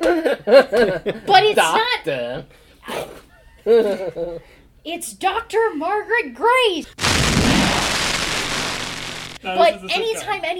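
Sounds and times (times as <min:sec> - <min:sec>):
speech: 0:00.1 - 0:07.9, 0:09.4 - 0:10.5
lightning thunder sound effect: 0:07.0 - 0:09.4.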